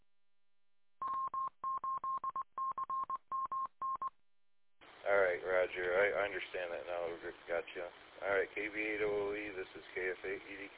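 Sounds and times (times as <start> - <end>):
telephone number dialed in touch-tone beeps: 1.0 - 4.1
speech: 5.8 - 10.7.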